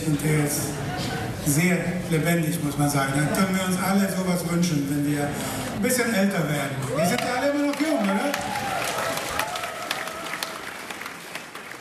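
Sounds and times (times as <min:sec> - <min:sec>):
speech: 0:00.0 - 0:08.4
concert audience applauding: 0:06.8 - 0:11.7.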